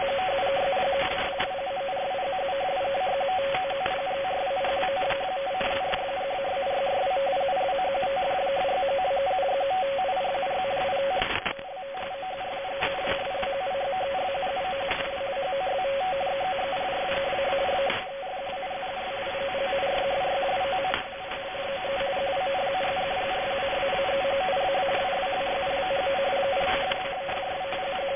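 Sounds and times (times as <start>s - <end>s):
data stream sound: 0.0s - 28.1s.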